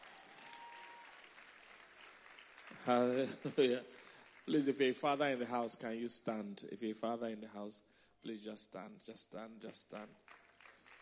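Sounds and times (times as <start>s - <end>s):
audience clapping: 0.0s - 5.3s, 9.6s - 10.9s
speech: 2.7s - 10.4s.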